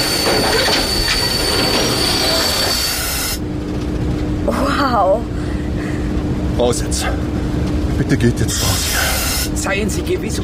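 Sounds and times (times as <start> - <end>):
locomotive wheels squealing during emergency braking: 0.0 - 3.4
heavy grinding rumble of braking locomotive: 0.0 - 10.4
speech: 4.5 - 5.4, 6.6 - 7.4, 8.0 - 8.9, 9.6 - 10.4.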